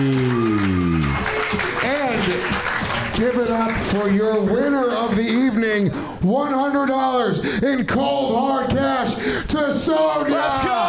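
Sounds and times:
audience applause in a crowded room: 0.0 - 5.0
speech: 3.2 - 10.8.

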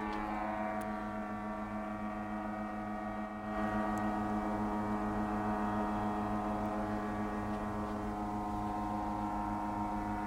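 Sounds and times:
unmanned test drone engine buzzing: 0.0 - 10.2.

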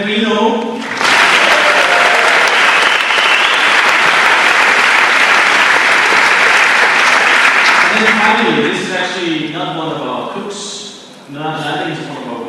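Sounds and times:
speech: 0.0 - 0.8, 8.2 - 10.0
audience applause: 0.8 - 8.6.

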